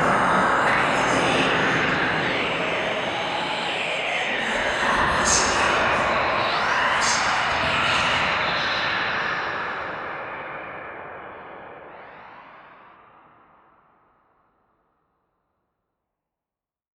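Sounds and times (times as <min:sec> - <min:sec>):
Halloween whispers: 0:00.0 - 0:09.8.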